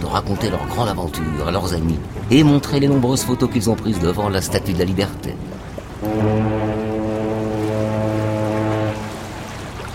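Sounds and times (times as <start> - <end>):
speech: 0.1 - 6.5
boat horn long low blast: 0.3 - 1.6, 3.0 - 4.3, 6.0 - 9.6.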